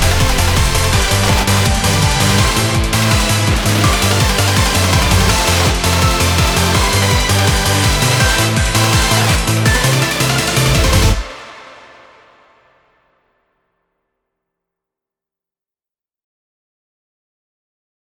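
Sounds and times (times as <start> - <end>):
instrumental music: 0.0 - 12.3.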